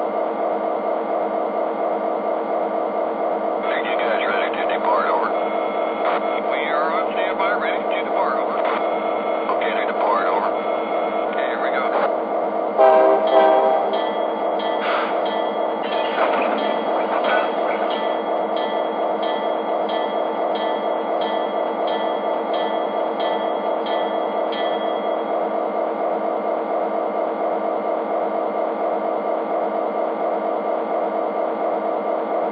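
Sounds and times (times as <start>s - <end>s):
SD45 electric train: 0.0s - 32.5s.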